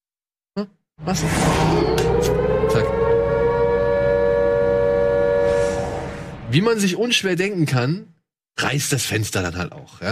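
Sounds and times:
speech: 0:00.6 - 0:03.3, 0:06.5 - 0:10.1
spoiler alarm siren sound effect: 0:01.3 - 0:06.5.

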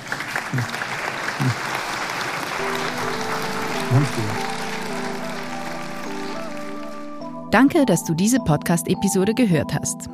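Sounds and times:
audience applause after a talk: 0:00.0 - 0:07.3
speech: 0:00.5 - 0:00.8, 0:01.4 - 0:01.7, 0:03.9 - 0:04.6, 0:07.5 - 0:10.1.

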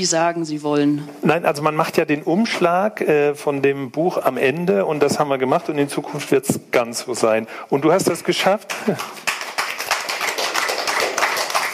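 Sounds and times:
speech: 0:00.0 - 0:09.4
restrained audience clapping: 0:08.2 - 0:11.7.

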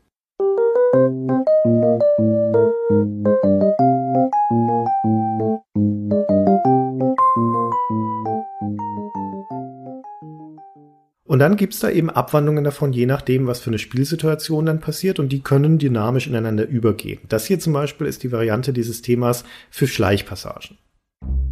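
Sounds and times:
calm video game background theme with bell-like chords: 0:00.4 - 0:11.1
speech: 0:11.4 - 0:20.9.

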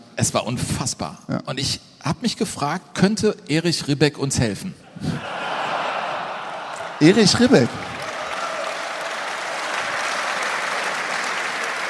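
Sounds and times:
speech: 0:00.2 - 0:05.4, 0:07.0 - 0:07.9
applause: 0:06.5 - 0:11.8.

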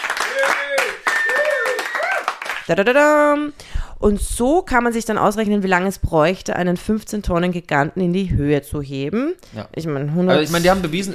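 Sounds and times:
applause: 0:00.0 - 0:02.7
speech: 0:02.7 - 0:11.1.

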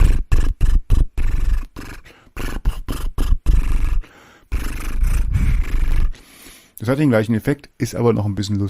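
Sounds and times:
lip trill imitating a horse, with sung melody: 0:00.0 - 0:06.2
speech: 0:06.9 - 0:08.6.

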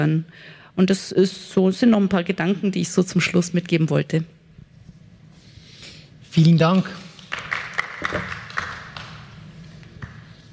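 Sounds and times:
speech: 0:00.0 - 0:04.4, 0:06.3 - 0:07.0, 0:08.1 - 0:08.4
audience applause after a talk: 0:07.3 - 0:09.4.

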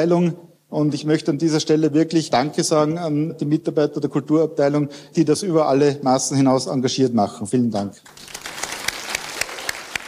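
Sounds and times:
speech: 0:00.0 - 0:08.4
audience applause: 0:08.1 - 0:10.0.

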